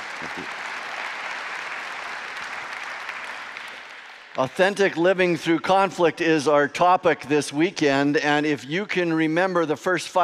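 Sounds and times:
audience applause welcoming a pastor as guest speaker: 0:00.0 - 0:05.4
speech: 0:04.4 - 0:10.2.

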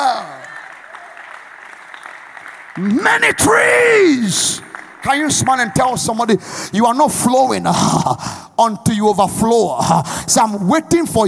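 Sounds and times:
audience clapping: 0:00.0 - 0:07.0
speech: 0:02.8 - 0:11.2.

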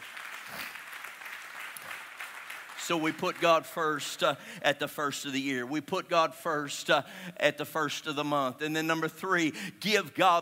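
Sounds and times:
audience clapping: 0:00.0 - 0:04.0
speech: 0:02.9 - 0:10.4.

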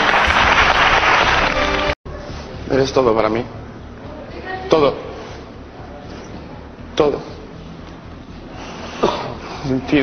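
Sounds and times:
audience applause: 0:00.0 - 0:02.0
speech: 0:02.7 - 0:03.6, 0:04.7 - 0:05.1, 0:07.0 - 0:07.3, 0:09.6 - 0:10.0.

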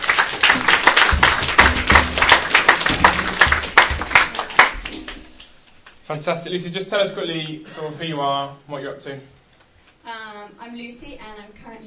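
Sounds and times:
audience applause: 0:00.0 - 0:05.6
speech: 0:06.1 - 0:09.4, 0:10.0 - 0:11.8.

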